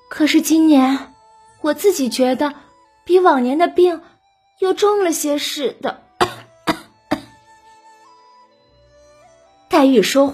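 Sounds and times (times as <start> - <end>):
speech: 0.2 - 6.0, 9.8 - 10.3
weak coughing: 6.2 - 7.3.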